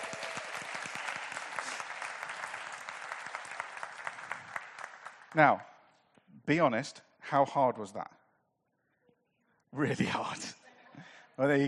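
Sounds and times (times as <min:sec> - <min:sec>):
audience applause: 0:00.0 - 0:05.4
speech: 0:05.4 - 0:05.7, 0:06.5 - 0:08.2, 0:09.7 - 0:10.6, 0:11.4 - 0:11.6.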